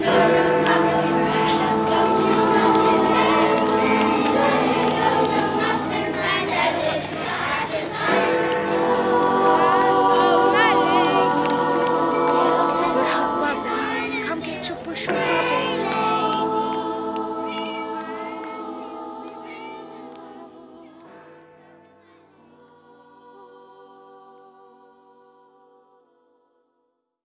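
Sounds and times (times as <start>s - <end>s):
soundscape: 0.0s - 21.4s.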